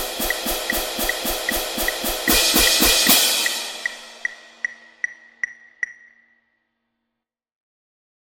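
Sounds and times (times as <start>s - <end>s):
cymbal flam sequence: 0.0s - 5.1s.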